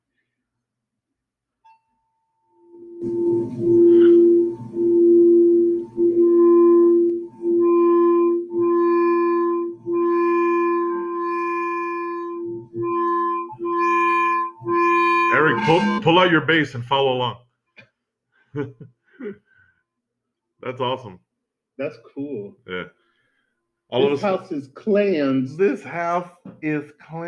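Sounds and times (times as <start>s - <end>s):
sound bath singing bowl tones: 2.5s - 16.3s
speech: 16.1s - 17.4s, 18.6s - 19.0s, 20.7s - 21.2s, 21.8s - 23.0s, 23.9s - 27.2s
laughter: 18.6s - 18.9s.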